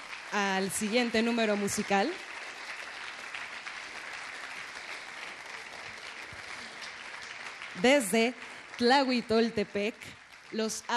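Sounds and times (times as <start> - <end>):
audience applause: 0.0 - 10.9
speech: 0.3 - 2.3, 7.8 - 10.9.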